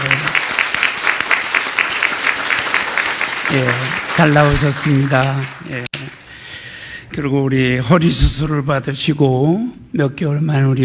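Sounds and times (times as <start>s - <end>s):
welcoming applause from audience: 0.0s - 6.3s
speech: 3.5s - 6.2s, 7.2s - 10.8s.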